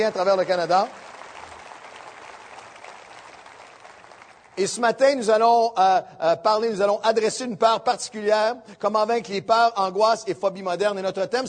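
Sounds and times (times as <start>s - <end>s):
speech: 0.0s - 1.0s, 4.6s - 11.4s
audience applause: 0.0s - 4.6s.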